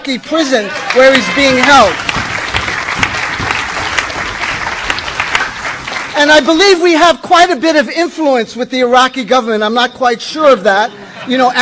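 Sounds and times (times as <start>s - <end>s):
speech: 0.0s - 2.1s, 6.2s - 11.6s
audience applause: 0.6s - 6.6s.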